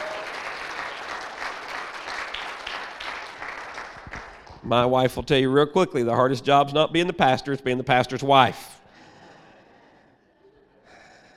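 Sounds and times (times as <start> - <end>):
audience applause: 0.0 - 4.7
speech: 4.6 - 8.7.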